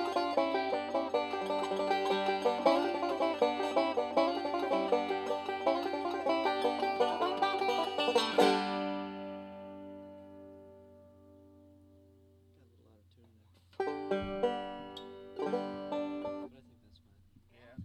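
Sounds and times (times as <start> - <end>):
banjo music: 0.0 - 12.9, 13.6 - 16.8.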